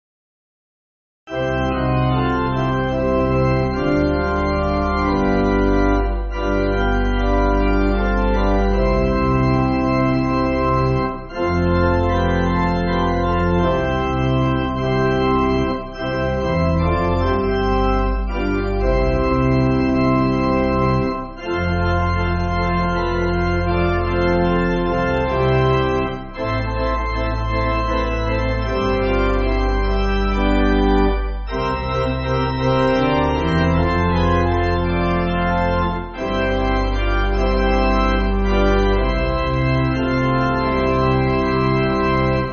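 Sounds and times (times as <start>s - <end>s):
pipe organ church music: 1.3s - 42.5s.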